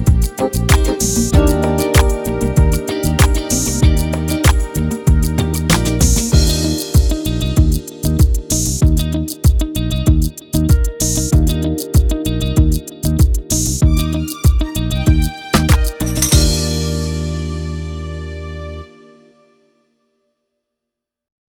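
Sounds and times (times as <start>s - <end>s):
step beat: 0.0s - 16.7s.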